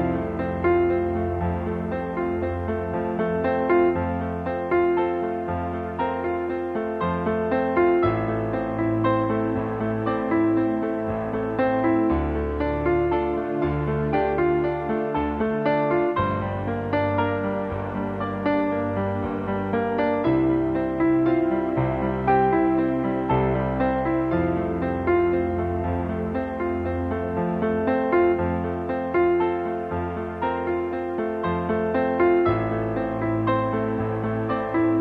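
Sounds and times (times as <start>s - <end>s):
supersweet piano: 0.0s - 34.9s.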